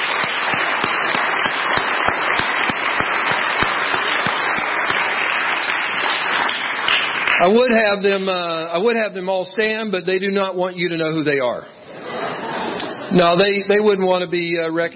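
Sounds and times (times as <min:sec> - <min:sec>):
audience round of applause: 0:00.0 - 0:08.0
speech: 0:07.4 - 0:11.8, 0:13.1 - 0:14.9
laughter: 0:11.8 - 0:13.5.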